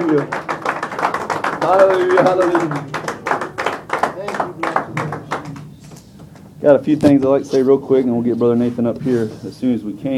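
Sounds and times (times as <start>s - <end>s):
speech: 0.0s - 0.4s, 1.6s - 3.0s, 6.6s - 10.1s
congregation rhythmic hand clapping at a Sunday morning church service: 0.0s - 6.0s.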